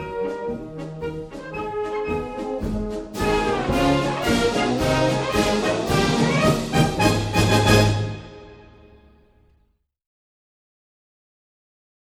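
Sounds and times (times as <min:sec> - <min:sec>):
march music: 0:00.0 - 0:09.5.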